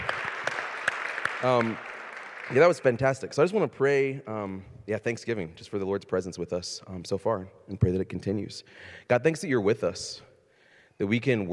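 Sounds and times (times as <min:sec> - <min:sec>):
audience clapping: 0:00.0 - 0:03.6
crowd noise: 0:00.0 - 0:03.7
speech: 0:01.4 - 0:01.9, 0:02.5 - 0:10.3, 0:11.0 - 0:11.5.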